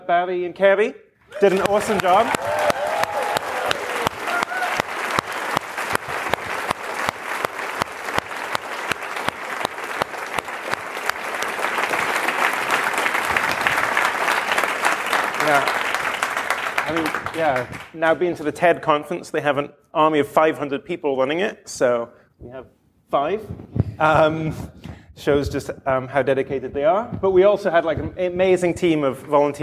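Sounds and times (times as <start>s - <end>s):
speech: 0.1s - 2.6s, 17.5s - 29.6s
audience applause: 1.3s - 18.0s.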